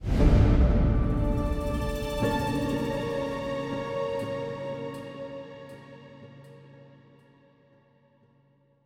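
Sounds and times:
music stinger: 0:00.0 - 0:06.4.

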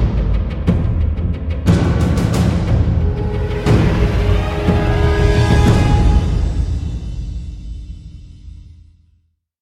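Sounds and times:
lagoon gameplay music: 0:00.0 - 0:07.7.

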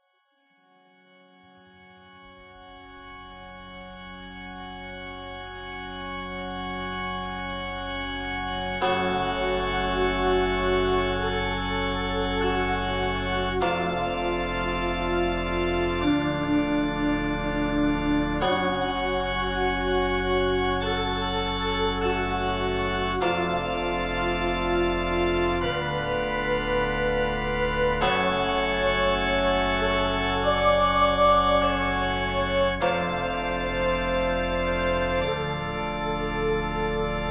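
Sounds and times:
moody church ambience: 0:00.8 - 0:37.2.

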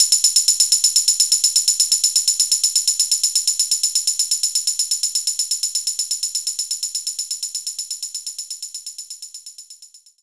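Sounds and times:
tambourine: 0:00.0 - 0:10.2.

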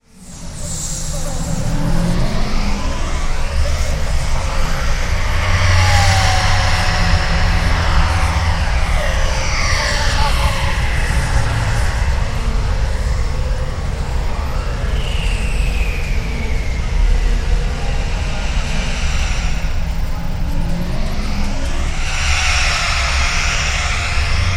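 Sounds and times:
city ambience: 0:00.0 - 0:24.5.

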